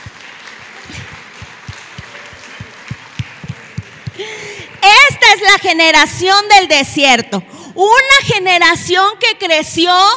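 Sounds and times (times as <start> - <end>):
audience applause: 0.0 - 4.8
speech: 5.4 - 10.1.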